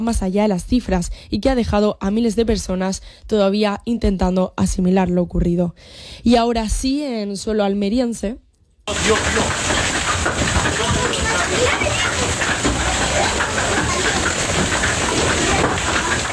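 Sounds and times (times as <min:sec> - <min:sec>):
speech: 0:00.0 - 0:09.8
hailstorm with large hailstones in the north of Almería province: 0:08.9 - 0:16.3.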